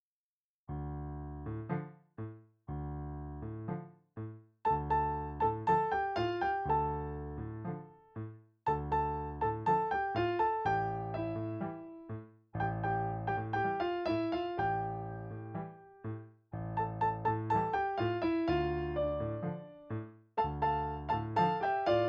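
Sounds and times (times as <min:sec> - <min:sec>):
easy tango piano duet: 0:00.7 - 0:22.0.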